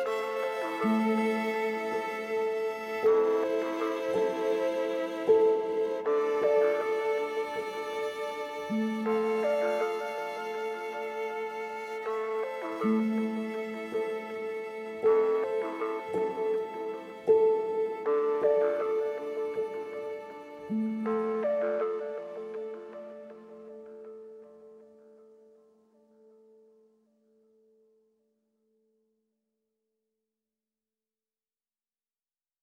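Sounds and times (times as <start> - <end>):
restful ambient music: 0.0 - 25.6.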